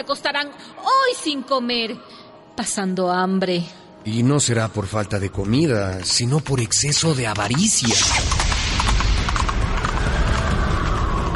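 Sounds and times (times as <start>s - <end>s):
speech: 0.0s - 8.4s
horse hooves clip-clopping: 5.1s - 11.3s.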